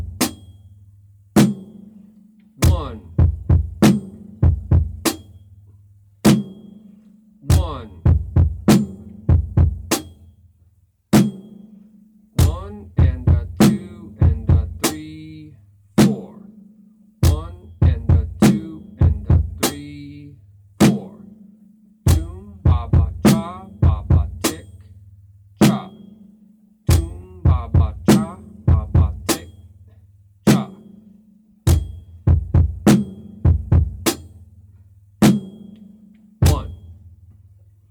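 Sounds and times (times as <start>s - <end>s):
drum beat: 0.0s - 0.6s, 1.4s - 2.0s, 2.6s - 5.4s, 6.3s - 6.8s, 7.4s - 10.3s, 11.2s - 11.8s, 12.4s - 16.4s, 17.2s - 21.3s, 22.1s - 25.0s, 25.6s - 26.1s, 26.9s - 29.8s, 30.4s - 31.0s, 31.7s - 37.5s.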